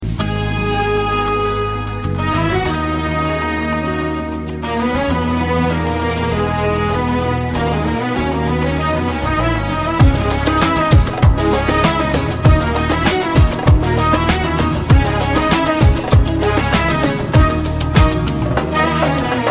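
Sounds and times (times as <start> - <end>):
instrumental music: 0.0 - 19.4.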